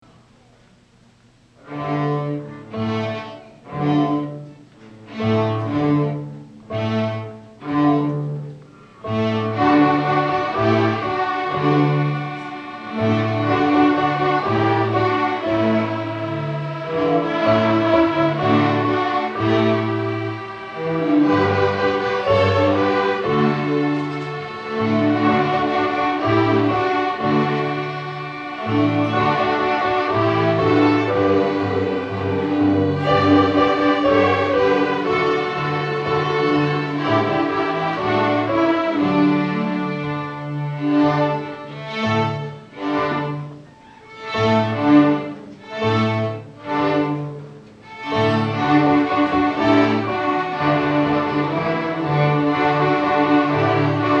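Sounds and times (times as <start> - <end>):
Latin tango music: 1.6 - 54.1.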